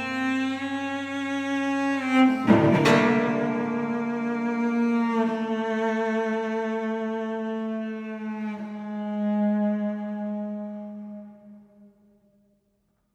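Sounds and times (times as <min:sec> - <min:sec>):
cello: 0:00.0 - 0:12.3
koto: 0:01.9 - 0:08.7.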